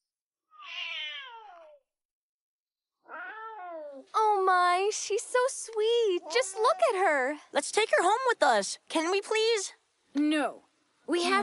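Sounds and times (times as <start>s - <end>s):
kitten meowing: 0.5s - 1.8s, 3.1s - 4.0s
speech: 4.0s - 11.4s.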